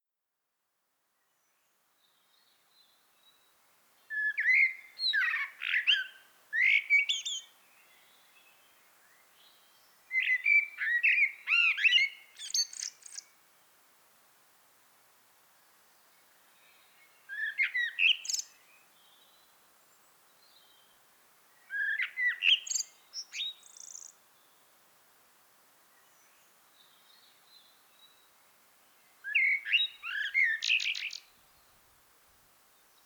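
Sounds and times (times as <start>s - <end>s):
soft hiss: 0.4s - 33.0s
common blackbird song: 4.1s - 7.5s, 10.1s - 13.3s, 17.3s - 19.3s, 21.7s - 24.2s, 29.2s - 31.3s.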